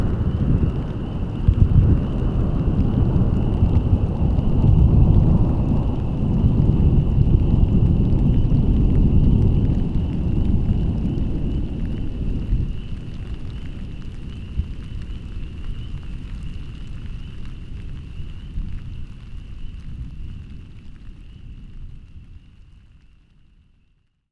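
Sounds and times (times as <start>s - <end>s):
rolling thunder: 0.0s - 16.6s.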